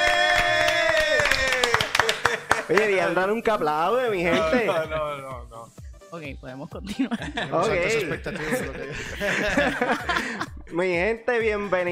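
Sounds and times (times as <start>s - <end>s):
group clapping hands: 0.0s - 3.2s
laughter: 1.3s - 2.9s, 6.8s - 10.6s
speech: 2.7s - 5.5s, 6.1s - 11.9s.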